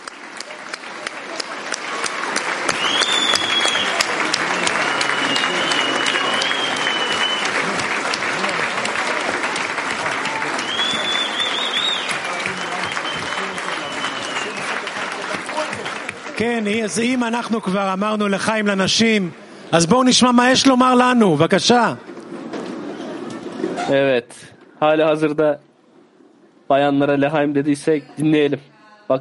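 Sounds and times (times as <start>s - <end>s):
audience applause: 0.0s - 21.0s
speech: 16.4s - 22.1s, 23.9s - 25.7s, 26.7s - 29.1s.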